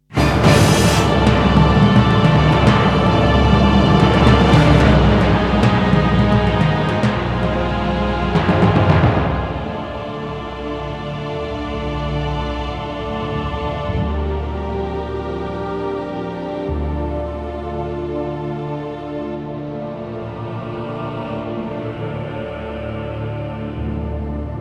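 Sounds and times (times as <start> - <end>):
death music: 0.0 - 24.6.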